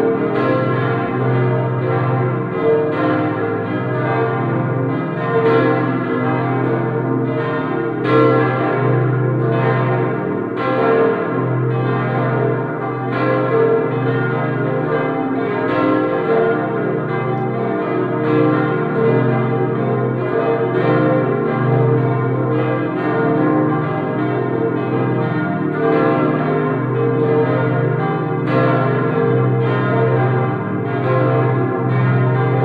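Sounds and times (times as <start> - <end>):
full peal of bells: 0.0 - 32.6.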